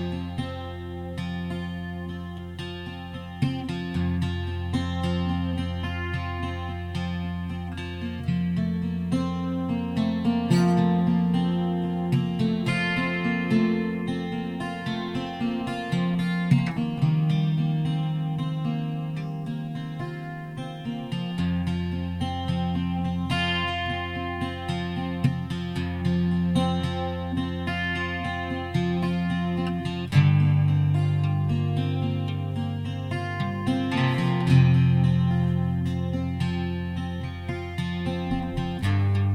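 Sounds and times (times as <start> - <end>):
alternate tune: 0.0 - 39.3.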